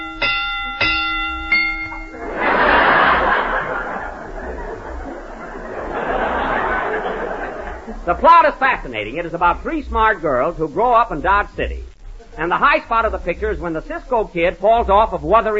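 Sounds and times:
bell chimes rung as a film rating: 0:00.0 - 0:02.2
group laughing and chuckling: 0:02.2 - 0:08.2
speech: 0:08.1 - 0:15.5.

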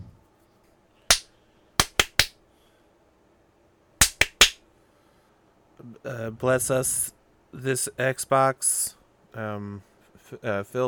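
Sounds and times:
sharp hand claps: 0:01.1 - 0:02.4, 0:04.0 - 0:04.6
speech: 0:05.8 - 0:10.8.

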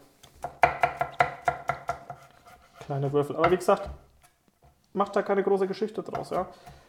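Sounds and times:
knife chopping garlic on a cutting board: 0:00.3 - 0:04.0
speech: 0:02.9 - 0:04.0, 0:05.0 - 0:06.8.

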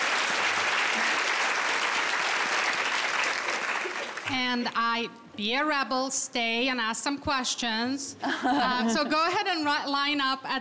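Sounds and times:
audience applause: 0:00.0 - 0:04.3
speech: 0:04.3 - 0:10.5.

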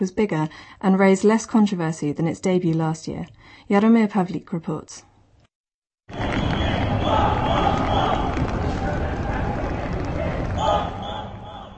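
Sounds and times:
speech: 0:00.0 - 0:05.1
parade crowd cheering in the street: 0:06.1 - 0:11.7.

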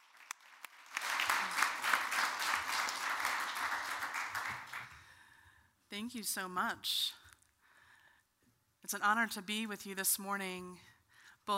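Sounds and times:
audience applause welcoming a speaker: 0:00.0 - 0:05.0
speech: 0:06.0 - 0:07.2, 0:08.9 - 0:10.9.

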